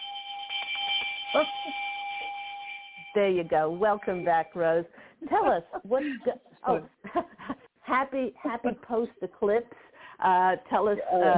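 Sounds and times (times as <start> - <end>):
welcome back bell sound effect: 0.0 - 4.7
speech: 1.3 - 1.9, 3.1 - 11.3.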